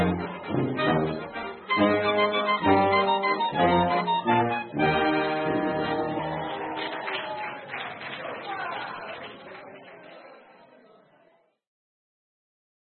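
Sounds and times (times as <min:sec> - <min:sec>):
Zillertal oompah band: 0:00.0 - 0:06.9.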